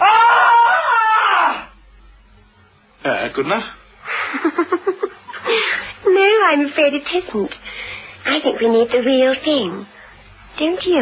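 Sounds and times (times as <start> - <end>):
woman's blood-curdling scream: 0.0 - 1.7
speech: 3.4 - 5.0, 6.4 - 7.6, 8.2 - 10.0, 10.6 - 10.9.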